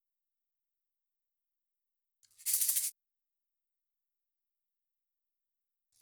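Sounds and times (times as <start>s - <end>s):
shaker: 2.3s - 3.0s.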